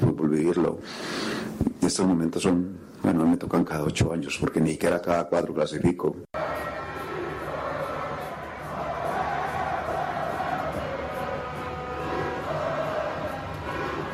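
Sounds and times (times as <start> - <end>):
speech: 0.4 - 1.2, 1.9 - 6.3
crowd chanting: 6.4 - 14.1.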